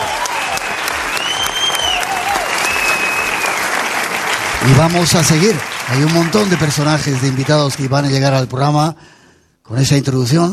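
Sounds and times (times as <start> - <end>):
faint high whistles or cheers: 0.0 - 4.4
crowd applauding: 0.0 - 8.4
speech: 4.6 - 9.1, 9.7 - 10.5.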